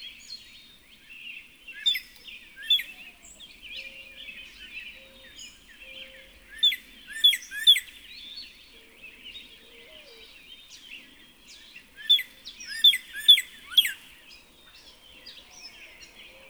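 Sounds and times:
Northern cardinal song of rapidly repeated down-slurred whistled notes: 0:01.7 - 0:03.0, 0:03.8 - 0:08.2, 0:12.0 - 0:14.1.

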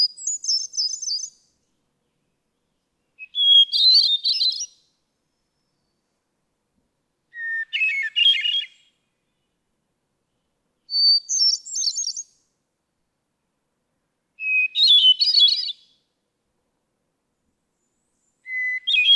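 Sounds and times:
hermit thrush singing: 0:00.0 - 0:01.4, 0:02.6 - 0:04.8, 0:07.3 - 0:08.9, 0:10.9 - 0:12.4, 0:14.4 - 0:15.9, 0:18.4 - 0:19.1.

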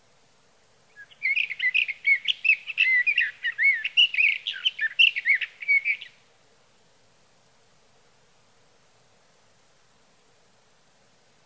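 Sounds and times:
sage thrasher song: 0:01.0 - 0:06.1.

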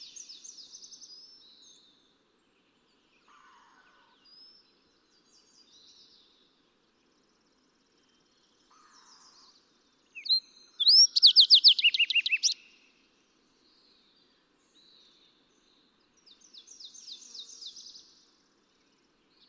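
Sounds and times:
fox sparrow calling: 0:10.2 - 0:12.7.

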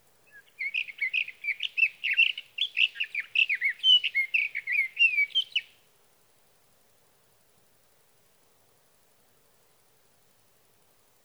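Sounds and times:
sage thrasher singing: 0:00.3 - 0:05.7.

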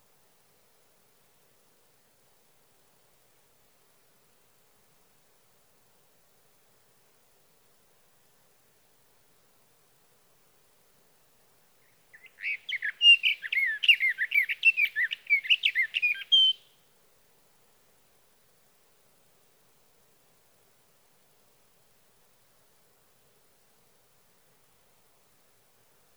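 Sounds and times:
sage thrasher: 0:12.1 - 0:16.7.

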